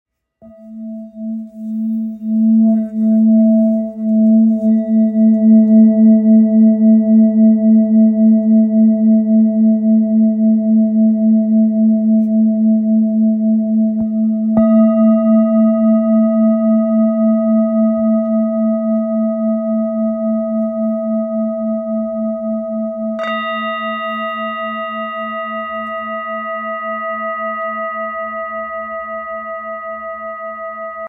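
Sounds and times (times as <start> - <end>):
Tibetan singing bowl in A: 0.4 - 31.0.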